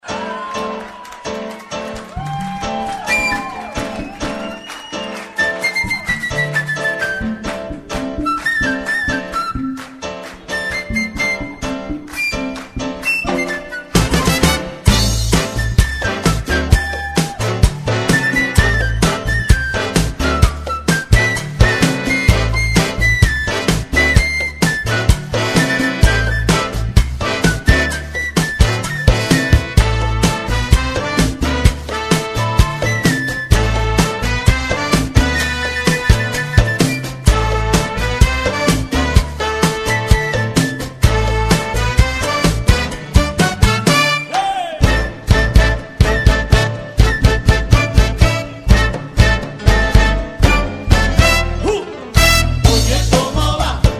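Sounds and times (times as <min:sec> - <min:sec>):
cha cha cha music: 0:00.0 - 0:53.9.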